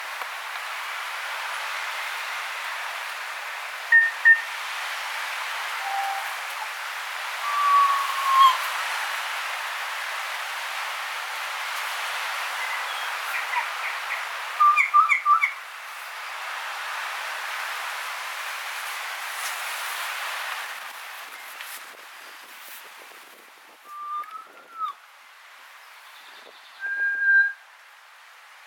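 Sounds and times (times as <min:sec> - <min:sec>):
breezy rustle: 0:00.0 - 0:14.6, 0:15.7 - 0:26.6
background hiss: 0:00.0 - 0:28.6
kokako whistling: 0:03.9 - 0:04.4, 0:05.8 - 0:06.4, 0:07.4 - 0:08.6, 0:23.9 - 0:25.0, 0:26.8 - 0:27.6.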